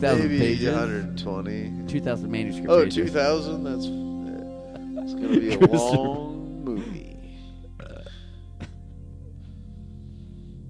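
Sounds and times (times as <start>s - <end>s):
laughter: 0.0s - 1.1s, 4.7s - 7.2s
speech: 0.0s - 4.0s, 5.0s - 6.8s
burp: 7.8s - 8.8s.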